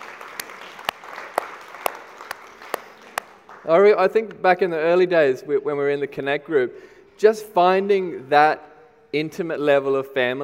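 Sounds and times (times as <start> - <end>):
people clapping in rhythm: 0.0 - 4.0
scattered applause: 0.0 - 4.0
speech: 3.6 - 10.4.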